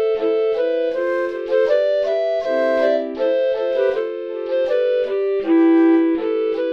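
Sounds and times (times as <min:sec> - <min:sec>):
flutes: 0:00.2 - 0:06.7.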